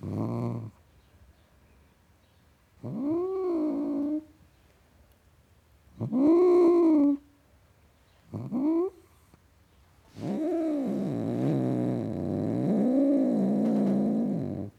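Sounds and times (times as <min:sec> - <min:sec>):
male tom cat growling: 0:00.0 - 0:00.8, 0:02.8 - 0:04.3, 0:06.0 - 0:07.2, 0:08.3 - 0:09.2, 0:10.1 - 0:14.7.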